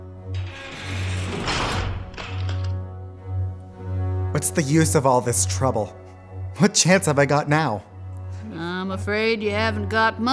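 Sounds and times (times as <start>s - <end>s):
heavy door shutting: 0.3s - 2.8s
speech: 4.4s - 6.0s, 6.6s - 7.9s, 8.5s - 10.3s.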